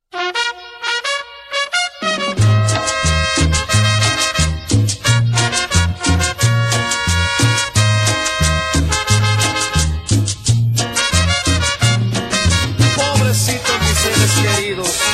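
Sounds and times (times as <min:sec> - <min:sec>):
cumbia music: 0:00.1 - 0:15.1.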